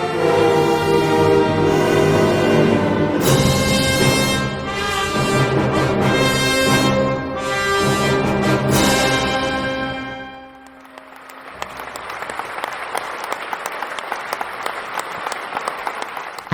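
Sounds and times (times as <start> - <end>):
sustained orchestral chord: 0.0 - 11.9
concert audience applause: 9.8 - 16.5.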